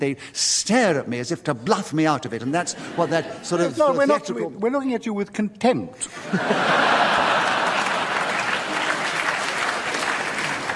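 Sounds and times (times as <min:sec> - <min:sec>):
speech: 0:00.0 - 0:07.4
laughter: 0:02.6 - 0:04.3, 0:06.0 - 0:10.7
studio audience applauding: 0:06.4 - 0:10.7.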